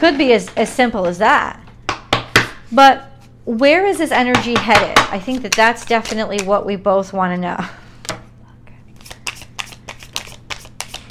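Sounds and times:
speech: 0.0 - 1.6, 2.7 - 7.8
tarot cards being shuffled and drawn: 5.2 - 6.5, 8.9 - 11.0.

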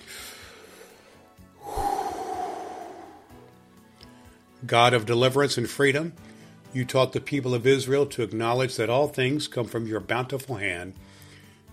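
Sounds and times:
deep breath drawn before a prayer: 0.0 - 3.6, 11.0 - 11.6
speech: 4.6 - 11.2.

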